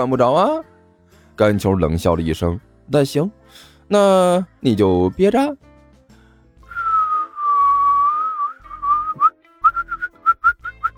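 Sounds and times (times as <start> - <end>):
speech: 0.0 - 0.7, 1.4 - 5.7
person whistling a tune: 6.6 - 10.9.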